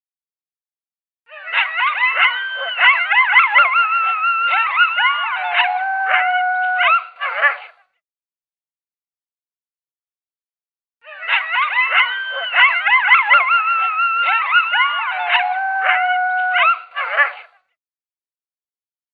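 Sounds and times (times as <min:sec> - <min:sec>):
coyote locator call of yips and howls: 0:01.3 - 0:07.8, 0:11.0 - 0:17.5.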